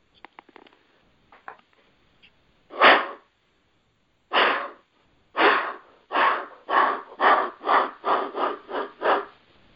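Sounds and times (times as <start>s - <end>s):
deer alarm distress call blown on a call: 5.4s - 9.2s.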